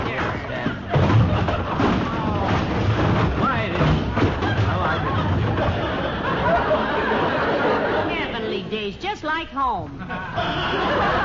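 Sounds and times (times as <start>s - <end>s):
avalanche of packages tumbling out of a car: 0.0s - 6.2s
laughter: 0.1s - 2.8s, 4.3s - 8.8s, 10.0s - 11.2s
speech: 9.5s - 11.0s.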